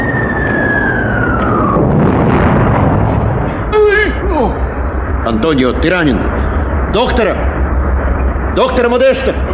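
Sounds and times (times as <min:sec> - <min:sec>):
falling whistle: 0:00.0 - 0:02.1
grenade explosions in a radio drama battle against tanks: 0:00.0 - 0:08.6
speech: 0:05.3 - 0:07.4, 0:08.5 - 0:09.4.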